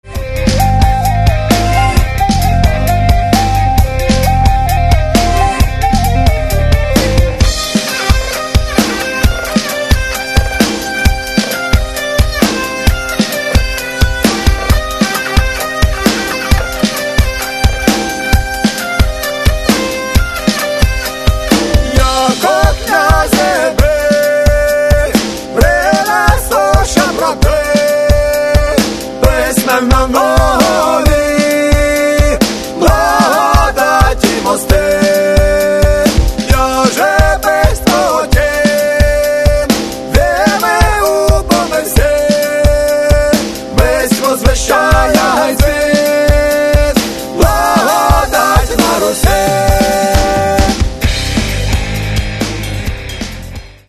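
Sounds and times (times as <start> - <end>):
rock music: 0.0 - 53.8.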